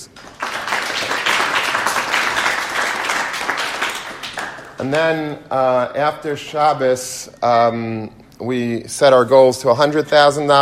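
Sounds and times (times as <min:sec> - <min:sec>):
applause: 0:00.0 - 0:05.0
speech: 0:04.8 - 0:10.6.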